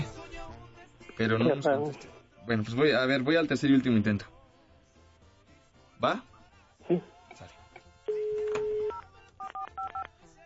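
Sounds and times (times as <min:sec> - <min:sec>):
speech: 0:01.2 - 0:04.4, 0:06.0 - 0:06.3, 0:06.9 - 0:07.6
long steady telephone line tone: 0:08.1 - 0:10.0
telephone keypad tones while dialing a number: 0:08.1 - 0:10.1.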